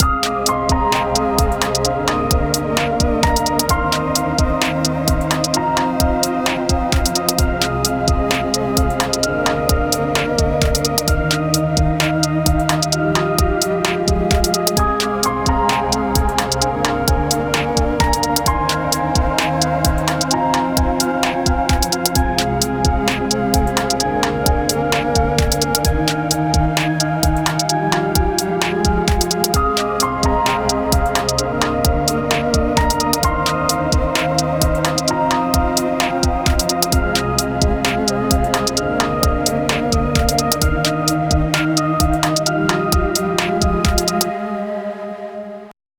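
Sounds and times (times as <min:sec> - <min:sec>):
instrumental music: 0:00.0 - 0:45.7.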